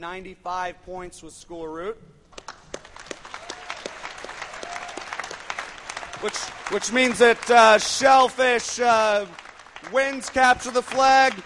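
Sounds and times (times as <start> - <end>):
speech: 0.0 - 2.2, 6.2 - 11.4
audience applause: 2.4 - 11.4.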